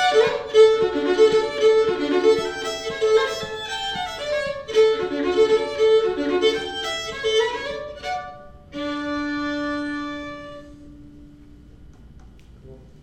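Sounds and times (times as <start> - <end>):
polka music: 0.0 - 9.2.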